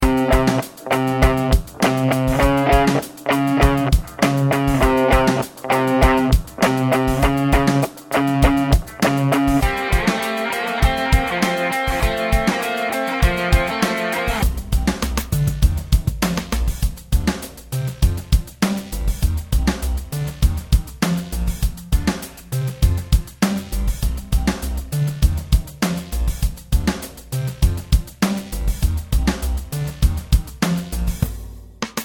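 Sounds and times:
guitar: 0.0 - 14.5
16th note drum groove: 0.0 - 32.0.

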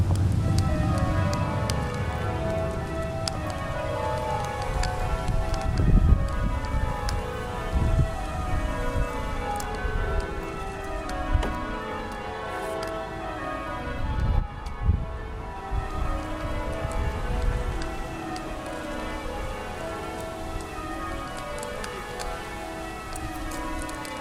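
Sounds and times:
Worcester Cathedral bells before a service: 0.0 - 24.1.

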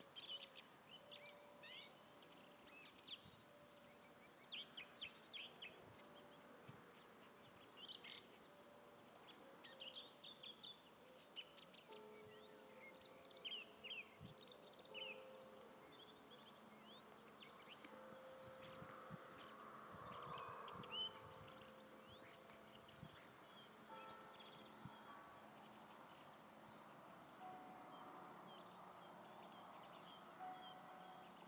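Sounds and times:
birds chirping at the Eulenberg: 0.0 - 31.4.

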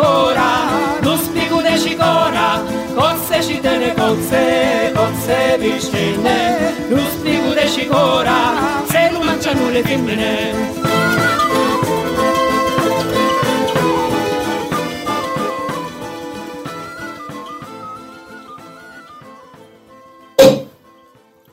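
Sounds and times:
lively music: 0.0 - 21.5
speech: 3.4 - 11.6
cork popping from prosecco bottle: 20.4 - 20.8.

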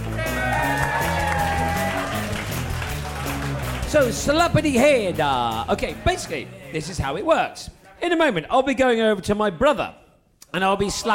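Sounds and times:
crowd applauding and cheering: 0.0 - 6.0
music or tonal sound: 0.0 - 10.0
speech: 3.9 - 11.1.

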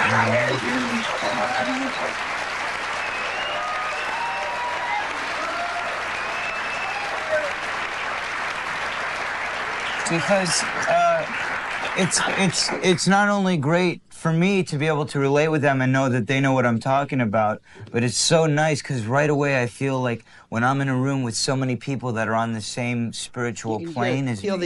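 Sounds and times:
audience applause: 0.0 - 13.1
speech: 0.2 - 2.4, 10.1 - 11.4, 12.0 - 24.6.

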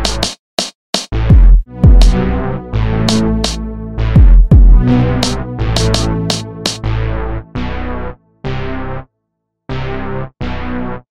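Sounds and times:
instrumental music: 1.4 - 8.0.

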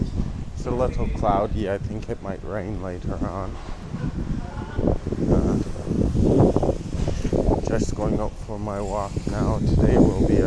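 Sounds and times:
wind buffeting a microphone outdoors during a walk: 0.0 - 10.4
speech: 0.6 - 4.4, 6.2 - 10.4.

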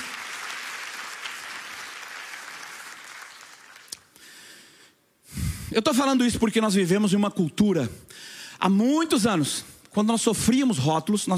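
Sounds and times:
audience applauding: 0.0 - 4.2
speech: 5.7 - 11.3.

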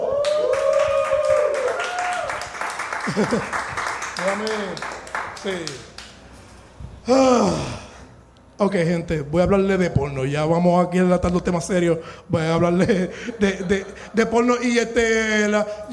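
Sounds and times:
audience applause: 0.0 - 6.0
laughter: 3.0 - 3.8, 12.7 - 14.7
speech: 3.1 - 3.6, 4.2 - 5.9, 7.1 - 7.8, 8.6 - 15.9.

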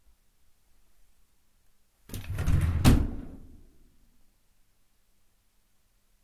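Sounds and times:
top drawer opening fast in a bedroom: 2.1 - 3.2.

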